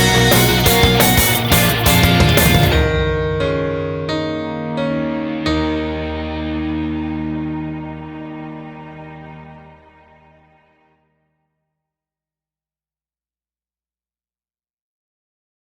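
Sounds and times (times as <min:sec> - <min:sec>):
instrumental music: 0:00.0 - 0:11.1.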